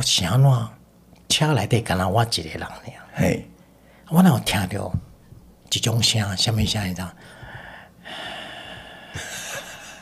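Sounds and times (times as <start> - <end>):
speech: 0.0 - 3.5, 4.1 - 5.1, 5.7 - 7.4
voice imitating heavy breathing: 7.2 - 10.0.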